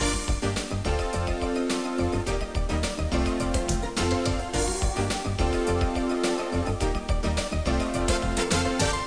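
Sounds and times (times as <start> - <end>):
soundtrack music: 0.0 - 9.0.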